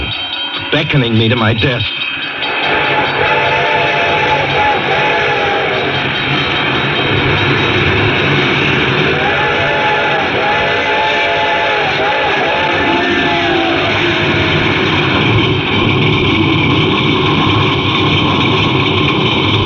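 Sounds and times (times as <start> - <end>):
approaching train rumbling: 0.0 - 19.6
speech: 0.7 - 2.0
train whistle in long wavering tones: 2.3 - 8.0, 8.6 - 15.7.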